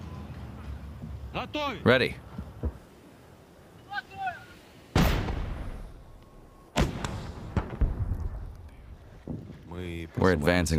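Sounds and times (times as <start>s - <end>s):
speech: 1.3s - 2.3s, 10.2s - 10.7s
artillery blasts during a military advance on Kherson: 4.9s - 6.2s, 6.7s - 9.6s.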